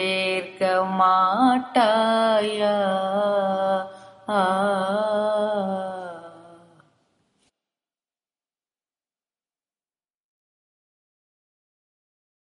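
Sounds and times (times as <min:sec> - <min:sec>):
Carnatic music in raga Desh: 0:00.0 - 0:07.5.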